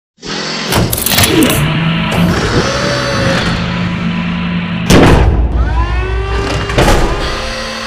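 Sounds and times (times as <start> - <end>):
assembly wall arm closing: 0.2 - 3.8, 4.9 - 7.7.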